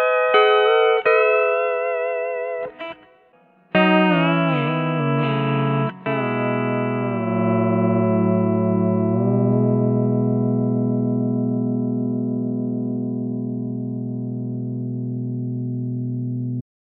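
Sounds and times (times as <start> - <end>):
guitar through amp modeler: 0.0 - 16.6.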